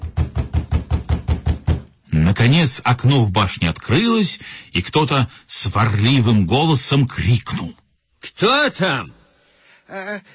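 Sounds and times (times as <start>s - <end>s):
knocking on a door: 0.0s - 2.0s
speech: 2.3s - 9.2s, 9.9s - 10.3s.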